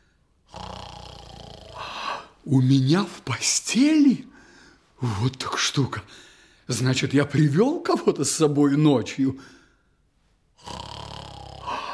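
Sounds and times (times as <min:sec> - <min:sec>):
snoring: 0:00.4 - 0:02.4, 0:10.6 - 0:11.9
speech: 0:02.4 - 0:04.3, 0:05.0 - 0:09.6.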